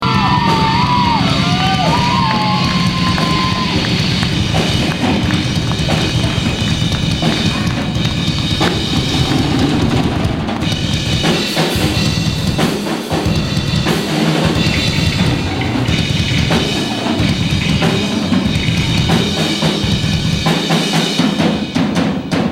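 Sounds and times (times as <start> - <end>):
live drum solo: 0.0 - 22.4.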